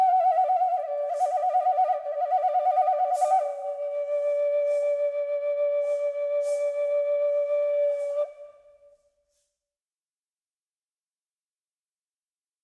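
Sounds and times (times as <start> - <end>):
flute phrases: 0.0 - 9.2.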